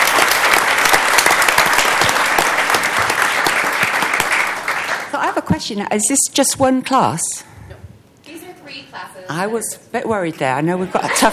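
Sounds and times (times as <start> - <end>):
crowd applause: 0.0 - 5.2
speech: 5.6 - 7.5, 9.3 - 11.3
laughter: 10.7 - 11.3.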